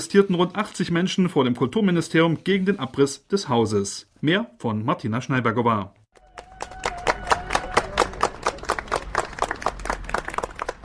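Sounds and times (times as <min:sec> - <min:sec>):
speech: 0:00.0 - 0:06.0
demonstrators applauding speakers: 0:06.2 - 0:10.8.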